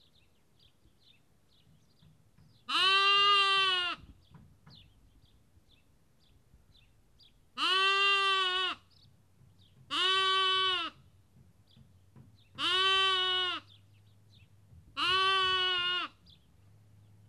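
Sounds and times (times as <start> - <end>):
sheep lamb bleating in Kakopetria Cyprus: 2.7 - 4.1, 7.6 - 8.9, 9.9 - 11.0, 12.6 - 13.8, 15.0 - 16.2.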